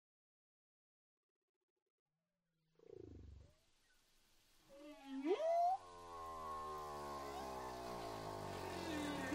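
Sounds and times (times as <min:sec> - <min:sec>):
whale song: 0:04.7 - 0:09.3.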